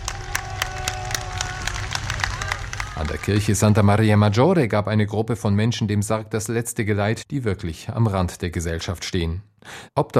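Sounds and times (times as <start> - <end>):
crowd applause along street: 0.0 - 4.3
speech: 3.0 - 10.1.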